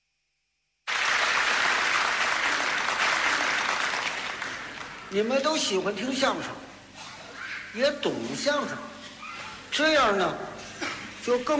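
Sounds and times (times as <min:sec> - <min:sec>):
audience applause: 0:00.9 - 0:05.2
speech: 0:05.1 - 0:06.6, 0:07.7 - 0:08.9, 0:09.8 - 0:10.6, 0:11.2 - 0:11.5.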